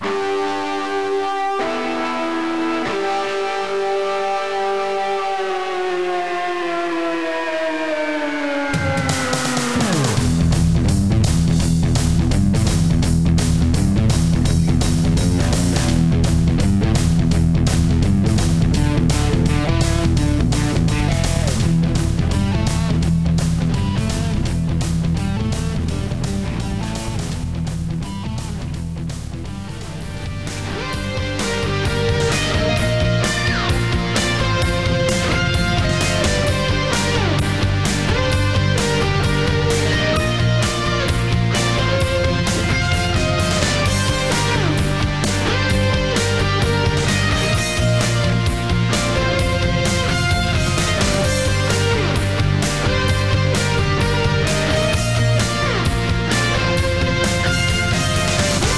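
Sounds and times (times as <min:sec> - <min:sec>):
rock music: 0:00.0 - 0:58.7.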